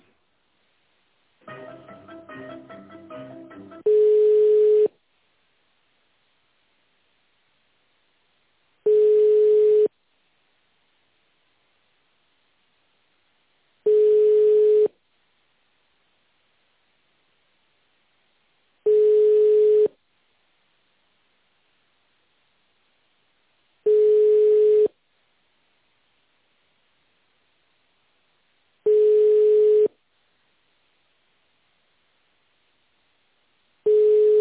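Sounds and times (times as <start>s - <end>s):
melodic snippet on a telephone line: 1.5s - 4.0s
long single-pitched beeps while a call is transferred: 3.8s - 4.9s, 8.9s - 9.9s, 13.9s - 14.9s, 18.9s - 19.9s, 23.9s - 24.9s, 28.9s - 29.9s, 33.9s - 34.3s.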